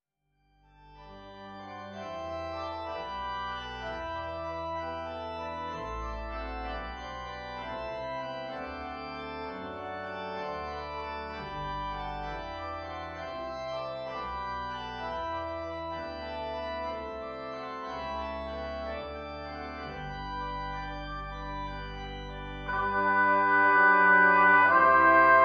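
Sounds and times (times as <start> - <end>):
brass ensemble: 22.6 - 25.4.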